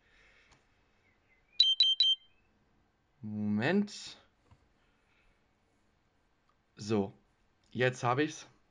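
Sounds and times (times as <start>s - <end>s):
diabetes monitor alarm beeping: 1.6s - 2.4s
speech: 3.2s - 4.2s, 6.8s - 8.5s.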